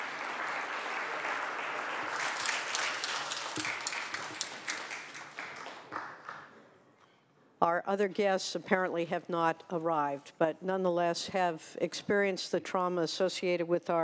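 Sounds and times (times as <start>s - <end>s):
audience in the California Senate clapping for a fourth grade class: 0.0s - 6.6s
speech: 7.6s - 14.0s.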